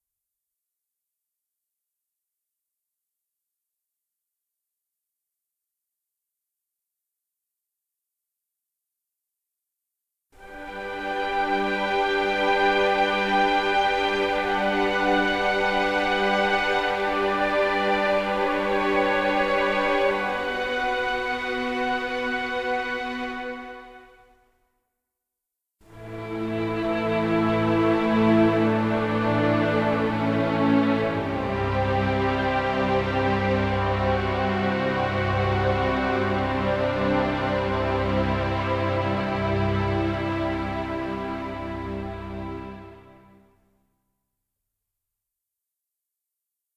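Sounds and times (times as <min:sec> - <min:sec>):
ambient strings: 0:10.5 - 0:23.9, 0:25.9 - 0:43.2.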